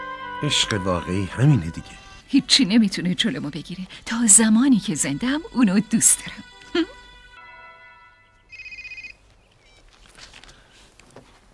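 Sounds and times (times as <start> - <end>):
speech: 0.4 - 7.0
telephone ringing: 8.5 - 9.2
soft shuffling noise: 9.2 - 11.5.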